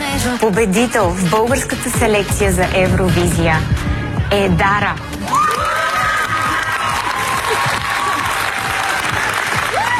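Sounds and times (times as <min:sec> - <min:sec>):
speech: 0:00.2 - 0:05.4
audience applause and cheering: 0:05.1 - 0:09.9.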